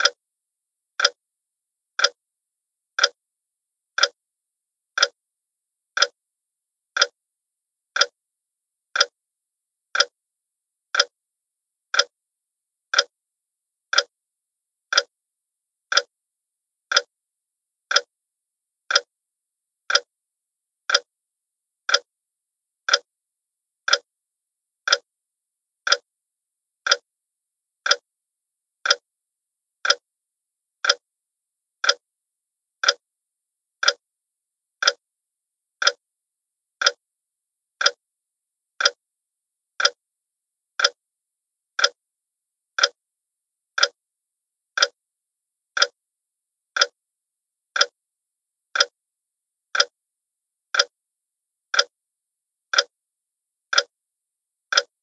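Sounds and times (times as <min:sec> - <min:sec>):
house clock: 0:00.0 - 0:00.2, 0:01.0 - 0:01.2, 0:01.9 - 0:02.2, 0:02.9 - 0:03.2, 0:03.9 - 0:04.2, 0:04.9 - 0:05.2, 0:05.9 - 0:06.2, 0:06.9 - 0:07.2, 0:07.9 - 0:08.2, 0:08.9 - 0:09.2, 0:09.9 - 0:10.2, 0:10.9 - 0:11.2, 0:11.9 - 0:12.2, 0:12.9 - 0:13.2, 0:13.9 - 0:14.2, 0:14.9 - 0:15.2, 0:15.8 - 0:16.2, 0:16.8 - 0:17.1, 0:17.8 - 0:18.1, 0:18.8 - 0:19.1, 0:19.8 - 0:20.1, 0:20.8 - 0:21.1, 0:21.8 - 0:22.1, 0:22.8 - 0:23.1, 0:23.8 - 0:24.1, 0:24.8 - 0:25.1, 0:25.8 - 0:26.1, 0:26.8 - 0:27.1, 0:27.8 - 0:28.1, 0:28.8 - 0:29.1, 0:29.8 - 0:30.1, 0:30.8 - 0:31.1, 0:31.8 - 0:32.1, 0:32.8 - 0:33.0, 0:33.8 - 0:34.0, 0:34.8 - 0:35.0, 0:35.8 - 0:36.0, 0:36.8 - 0:37.0, 0:37.7 - 0:38.0, 0:38.7 - 0:39.0, 0:39.7 - 0:40.0, 0:40.7 - 0:41.0, 0:41.7 - 0:42.0, 0:42.7 - 0:43.0, 0:43.7 - 0:44.0, 0:44.7 - 0:45.0, 0:45.7 - 0:46.0, 0:46.7 - 0:47.0, 0:47.7 - 0:48.0, 0:48.7 - 0:49.0, 0:49.7 - 0:50.0, 0:50.7 - 0:51.0, 0:51.7 - 0:52.0, 0:52.7 - 0:53.0, 0:53.6 - 0:54.0, 0:54.6 - 0:55.0.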